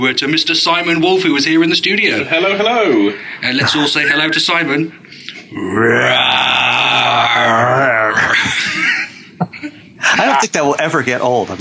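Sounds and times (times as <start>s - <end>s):
speech: 0.0s - 6.4s, 10.1s - 11.6s
man roaring: 5.5s - 8.5s
laughter: 7.4s - 10.4s.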